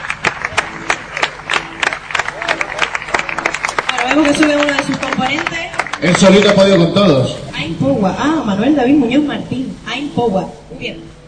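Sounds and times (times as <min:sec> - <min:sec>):
crowd at a LAN party in Tenerife applauding tournament champions: 0:00.0 - 0:07.4
voices murmuring and calling out: 0:00.4 - 0:11.2
speech: 0:04.0 - 0:11.2.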